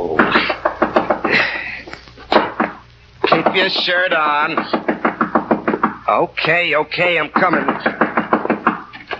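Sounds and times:
firm knocking on a door: 0.2 - 1.3, 2.3 - 6.1, 7.3 - 9.0
speech: 3.5 - 4.8, 6.1 - 8.0.

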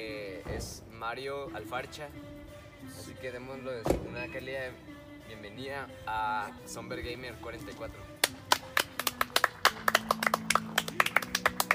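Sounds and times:
speech: 0.6 - 8.1
audience clapping: 8.2 - 11.7.

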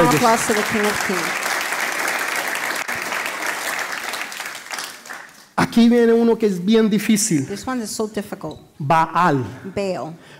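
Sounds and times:
audience applause: 0.0 - 5.6
speech: 0.1 - 1.4, 5.8 - 10.3.

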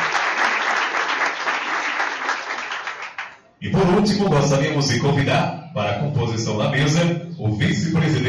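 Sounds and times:
audience applause: 0.0 - 3.4
speech: 3.6 - 8.2.

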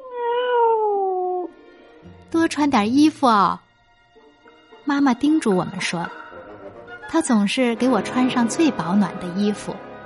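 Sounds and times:
cat meowing in front of a stove: 0.0 - 1.5
speech: 2.5 - 3.6, 4.9 - 6.2, 7.1 - 9.9.

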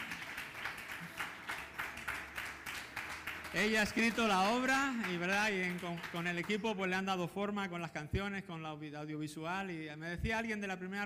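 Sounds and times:
audience applause: 0.0 - 6.6
speech: 3.5 - 11.0.

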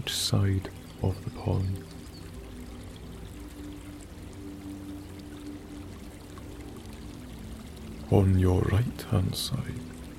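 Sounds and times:
speech: 0.0 - 1.9, 8.1 - 9.9
small stream flowing from distant woodland: 0.0 - 10.1.

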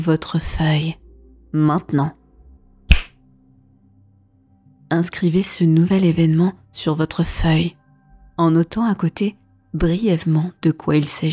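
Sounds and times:
speech: 0.0 - 2.2, 4.9 - 7.8, 8.4 - 11.3
finger snap: 2.9 - 3.1.

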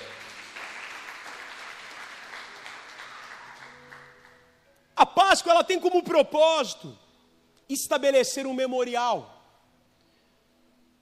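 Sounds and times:
audience applause: 0.0 - 4.4
speech: 5.0 - 7.0, 7.7 - 9.4.

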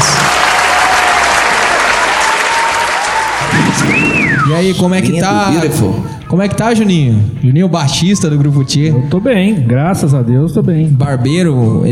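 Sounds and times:
round of applause: 0.0 - 4.8
speech: 4.6 - 11.9.

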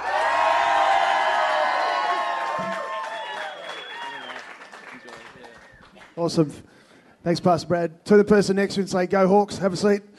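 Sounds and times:
audience cheering and whooping: 0.0 - 4.8
audience applause: 0.0 - 6.2
speech: 6.2 - 10.1.

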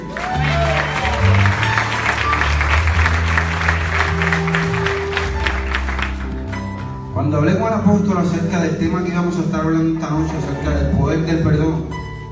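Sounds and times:
audience applause: 0.0 - 6.9
speech: 7.4 - 12.0.

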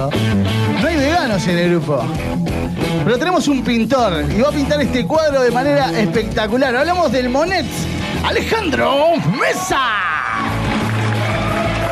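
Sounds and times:
speech: 0.0 - 0.5, 1.3 - 10.2
crowd applauding: 8.8 - 11.9.

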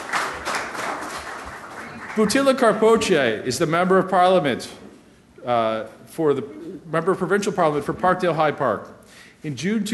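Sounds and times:
audience applause: 0.0 - 2.7
speech: 2.2 - 4.8, 5.4 - 9.9.

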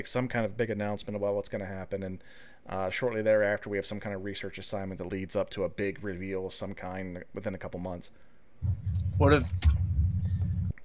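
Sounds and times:
speech: 0.0 - 9.8
neighbour's car engine driving around in his yard: 8.6 - 10.8.

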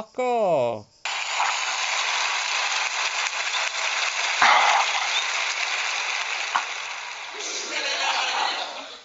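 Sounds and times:
speech: 0.0 - 0.9
applause sound effect: 1.1 - 8.6
canned laughter: 7.4 - 9.0.

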